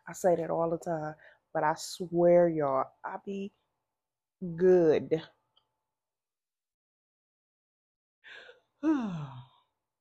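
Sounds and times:
speech: 0.1 - 3.6, 4.4 - 5.4, 8.3 - 9.4
person yawning: 8.8 - 9.5.

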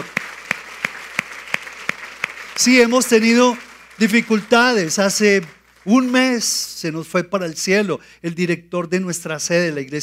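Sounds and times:
audience applauding: 0.0 - 7.0
speech: 2.6 - 10.0.

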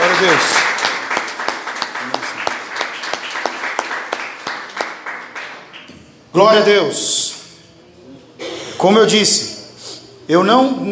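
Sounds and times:
audience applauding: 0.0 - 5.9
speech: 0.2 - 0.7, 6.3 - 7.1, 8.8 - 9.5, 10.3 - 10.9.

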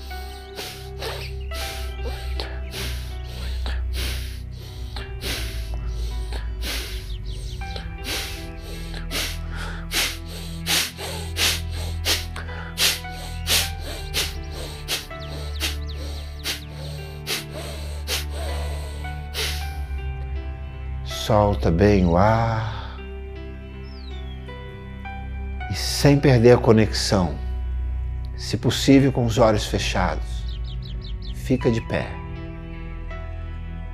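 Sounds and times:
rapid deep breaths through the nose during a guided breathing exercise: 0.0 - 19.9
low steady musical drone: 0.0 - 33.9
speech: 21.3 - 22.8, 26.0 - 27.5, 28.5 - 30.3, 31.5 - 32.2.

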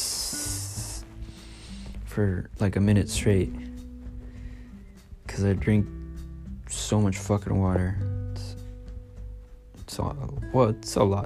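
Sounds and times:
voice imitating urine stream: 0.0 - 1.9
speech: 2.1 - 3.7, 5.4 - 6.0, 6.8 - 8.1, 10.0 - 11.2.

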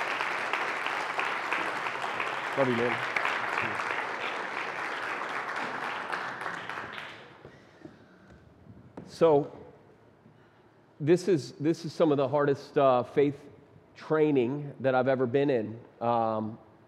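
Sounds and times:
audience applause: 0.0 - 7.6
speech: 2.6 - 3.9, 9.2 - 9.6, 11.0 - 16.6.

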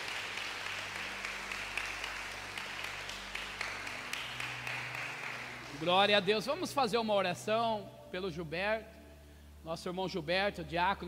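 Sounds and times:
audience applause: 0.0 - 6.4
speech: 5.8 - 9.0, 9.6 - 11.0.

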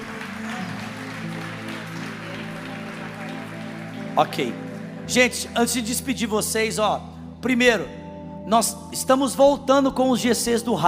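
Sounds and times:
audience applause: 0.0 - 5.6
speech: 4.2 - 10.8.

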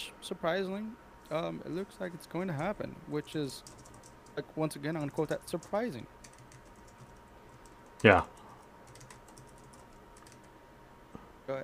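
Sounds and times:
soft steady hiss: 0.0 - 11.6
speech: 0.2 - 3.8, 4.4 - 6.2, 8.0 - 8.4
typing on a computer keyboard: 3.6 - 8.1, 8.8 - 10.5.

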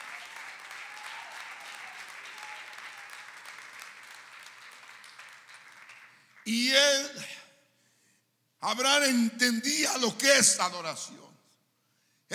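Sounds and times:
audience applause: 0.0 - 6.5
speech: 6.5 - 7.3, 8.6 - 11.3.

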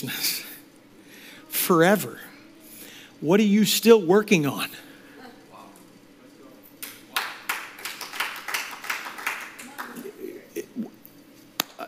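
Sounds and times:
speech: 0.0 - 0.3, 1.7 - 2.3, 3.2 - 4.9
soft polite golf clapping: 6.8 - 10.1, 11.6 - 11.8.

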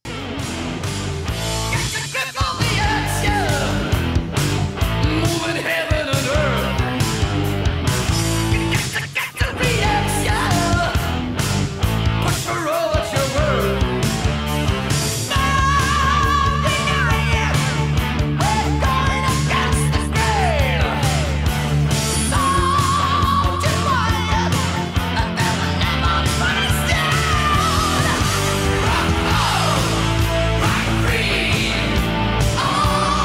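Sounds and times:
hard rock song: 0.0 - 33.2.

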